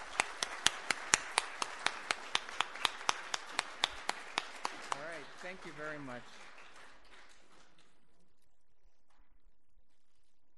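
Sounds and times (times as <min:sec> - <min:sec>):
audience hand claps welcoming speakers: 0:00.0 - 0:08.4
speech: 0:05.5 - 0:06.4.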